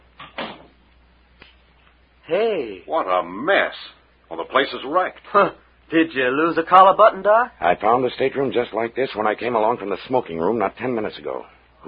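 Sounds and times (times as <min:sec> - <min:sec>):
door closing: 0:00.2 - 0:00.8
speech: 0:02.3 - 0:11.8.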